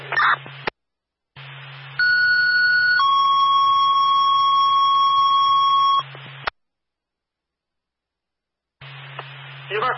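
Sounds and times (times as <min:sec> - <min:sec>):
buzzy hum: 0:01.4 - 0:06.5, 0:08.8 - 0:09.9
fire alarm at a headquarters: 0:02.0 - 0:06.0.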